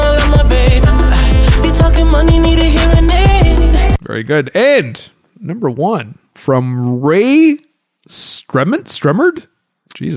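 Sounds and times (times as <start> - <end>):
new pop single with kick drums and synth chords: 0.0 - 4.0
speech: 4.2 - 10.1.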